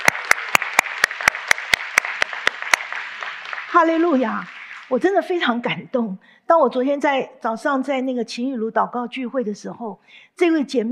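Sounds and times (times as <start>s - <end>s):
audience applause: 0.0s - 5.0s
speech: 3.7s - 10.9s.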